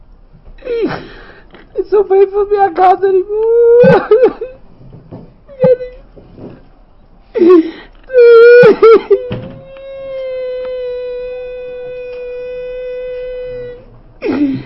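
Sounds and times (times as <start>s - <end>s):
person crying and wailing: 0.6s - 1.2s, 2.4s - 4.6s, 5.5s - 6.0s, 7.4s - 14.6s
speech: 1.9s - 4.6s.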